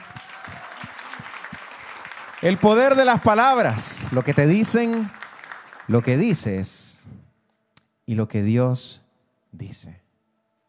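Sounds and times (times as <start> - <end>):
crowd applause: 0.0 - 6.5
speech: 2.4 - 5.2, 5.9 - 6.9, 8.1 - 10.0.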